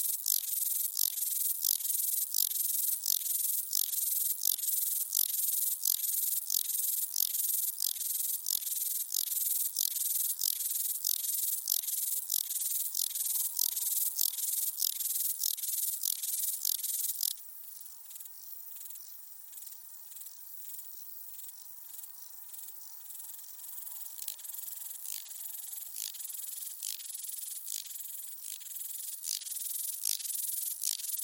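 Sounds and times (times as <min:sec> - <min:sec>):
rattle grasshopper rasping: 0:00.1 - 0:17.3, 0:24.0 - 0:31.2.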